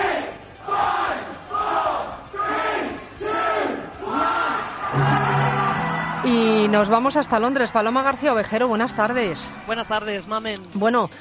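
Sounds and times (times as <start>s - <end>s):
packed crowd celebrating and chanting in a pub: 0.0s - 7.9s
sustained tone: 4.9s - 10.3s
speech: 6.7s - 11.2s.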